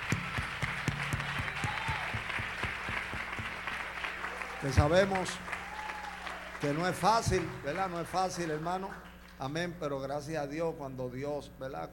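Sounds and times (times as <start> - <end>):
crowd applauding: 0.0 - 9.4
speech: 4.6 - 5.5, 6.6 - 11.9.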